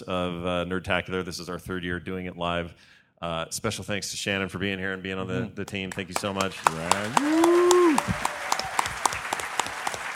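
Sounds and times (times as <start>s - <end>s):
speech: 0.0s - 8.2s
audience applause: 5.9s - 10.1s.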